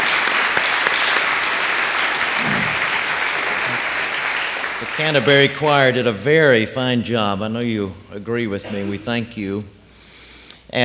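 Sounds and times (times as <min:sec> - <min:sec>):
round of applause from a crowd: 0:00.0 - 0:05.8
speech: 0:05.0 - 0:09.8.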